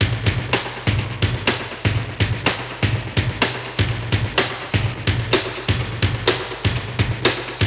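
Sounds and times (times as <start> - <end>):
classic drum breaks at 125 BPM: 0.0 - 7.6.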